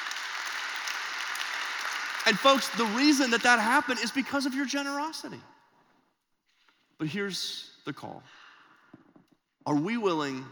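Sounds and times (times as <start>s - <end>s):
crowd applauding: 0.0s - 4.7s
speech: 2.2s - 5.5s, 7.0s - 8.4s, 9.6s - 10.5s.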